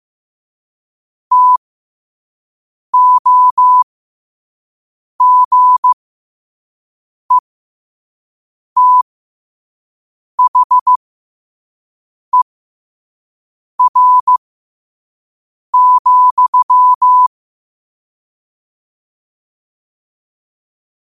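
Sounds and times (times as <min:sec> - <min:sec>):
morse code at 5 wpm: 0:01.3 - 0:01.6, 0:03.0 - 0:03.8, 0:05.2 - 0:06.0, 0:08.8 - 0:09.0, 0:10.4 - 0:11.0, 0:13.8 - 0:14.4, 0:15.8 - 0:17.3.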